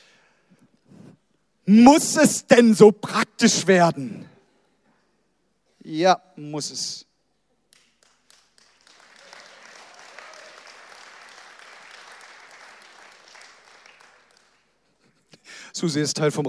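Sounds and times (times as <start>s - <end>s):
speech: 1.7s - 4.3s, 5.9s - 7.1s, 15.8s - 16.4s
audience applause: 7.8s - 14.8s.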